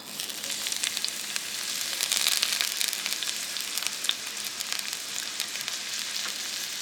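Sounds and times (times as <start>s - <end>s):
chopped onions sizzling in hot olive oil in a big red Dutch oven: 0.0s - 6.8s.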